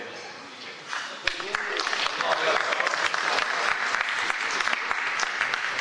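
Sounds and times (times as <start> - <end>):
audience clapping: 0.9 - 5.7.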